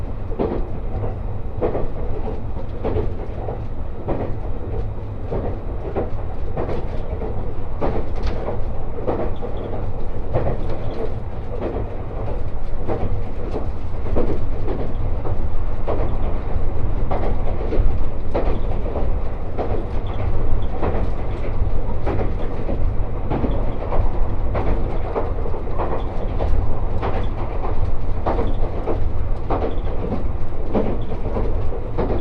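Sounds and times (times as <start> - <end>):
Resort Shirakami No. 4 train running along the Sea of Japan coast: 0.0 - 32.1
train wheels clicking on track: 0.4 - 32.1.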